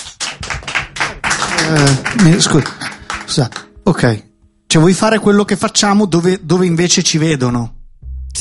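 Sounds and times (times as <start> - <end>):
lukewarm audience applause: 0.0 - 3.7
speech: 1.7 - 7.8.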